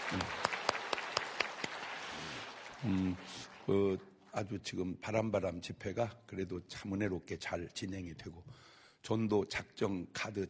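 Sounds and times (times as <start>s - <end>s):
audience applause: 0.0s - 4.0s
speech: 0.1s - 0.4s, 2.8s - 10.4s.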